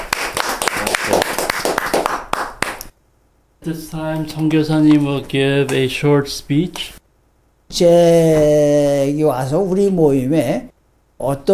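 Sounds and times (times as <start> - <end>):
small group clapping: 0.0 - 3.0
speech: 3.6 - 7.0, 7.7 - 11.5.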